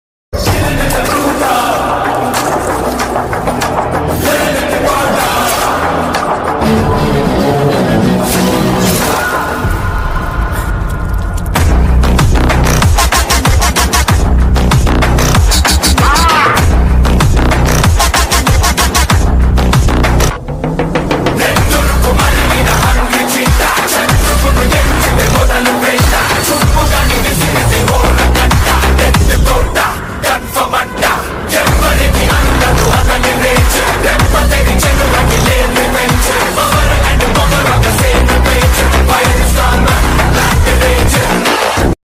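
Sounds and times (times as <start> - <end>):
background music ringtone: 0.4 - 42.0.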